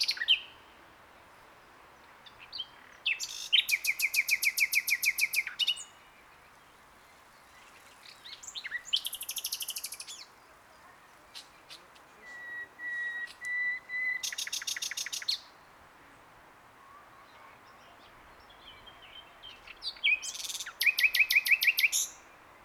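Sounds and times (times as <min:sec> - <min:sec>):
common nightingale song of chipping notes, trills and whistles: 0:02.3 - 0:06.0, 0:08.0 - 0:10.4, 0:11.3 - 0:15.5, 0:18.4 - 0:22.3.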